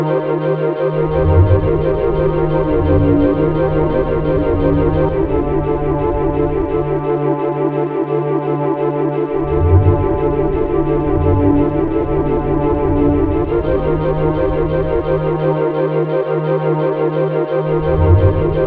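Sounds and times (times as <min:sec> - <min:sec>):
mellow ambient music: 0:00.0 - 0:18.6.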